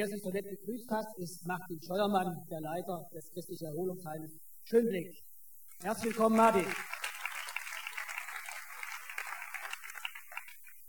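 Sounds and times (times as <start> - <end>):
speech: 0.0 - 7.0
audience applause: 5.8 - 10.8.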